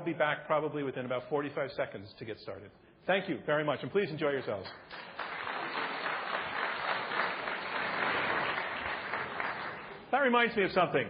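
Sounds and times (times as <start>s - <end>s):
speech: 0.1s - 5.3s, 10.2s - 11.0s
audience applause: 4.9s - 10.1s.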